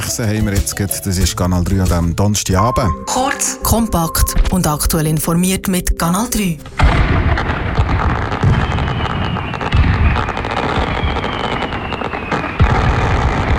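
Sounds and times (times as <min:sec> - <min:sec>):
speech: 0:00.2 - 0:07.6
fireworks booming and crackling: 0:06.7 - 0:13.5
firework whistling: 0:07.9 - 0:13.5.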